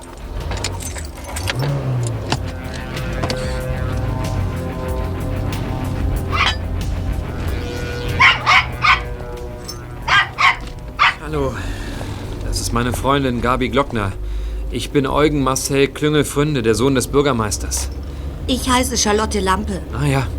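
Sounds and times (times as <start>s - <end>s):
car engine rumble: 0.0s - 20.3s
dachshund barking: 6.3s - 6.6s, 8.1s - 11.3s
speech: 12.8s - 20.3s.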